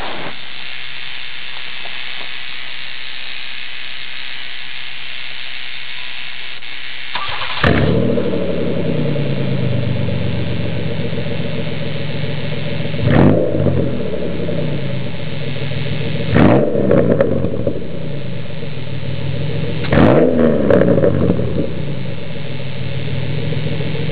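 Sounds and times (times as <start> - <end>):
engine revving through new muffler: 7.1 - 24.1.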